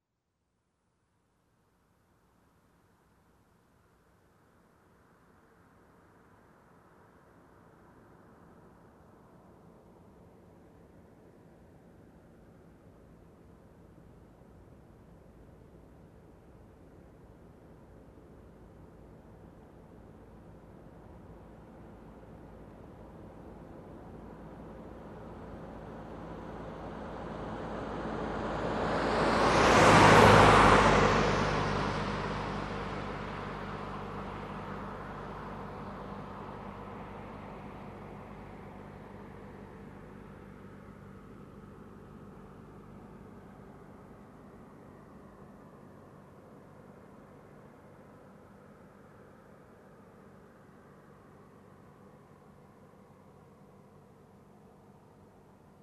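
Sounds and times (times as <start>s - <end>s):
car passing by: 25.2s - 53.7s.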